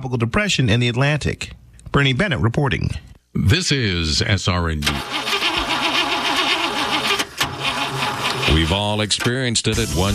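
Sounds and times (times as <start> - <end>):
speech: 0.0 - 5.3, 8.5 - 10.1
car engine cranking but failing to start: 4.8 - 8.9.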